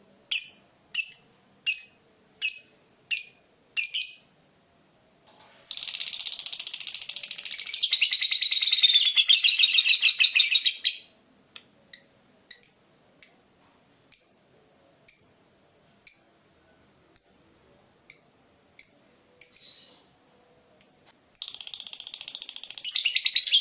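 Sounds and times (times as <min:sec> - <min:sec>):
lovebird song of sharp chirps and buzzy chattering trill: 0:00.3 - 0:04.3, 0:05.6 - 0:11.1, 0:18.1 - 0:20.1, 0:20.8 - 0:23.5.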